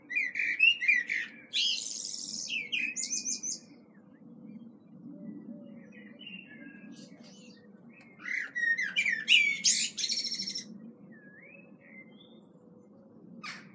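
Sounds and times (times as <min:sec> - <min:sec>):
common blackbird Turdus merula singing: 0:00.1 - 0:04.2, 0:05.6 - 0:12.5.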